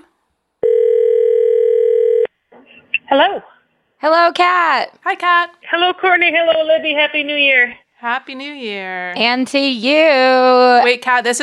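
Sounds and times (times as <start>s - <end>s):
telephone dial tone while calling: 0.6s - 2.3s
speech: 3.1s - 11.4s.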